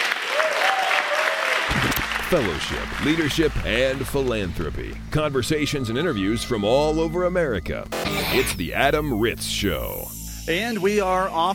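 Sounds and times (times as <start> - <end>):
audience applause: 0.0 - 4.4
speech: 2.3 - 11.5.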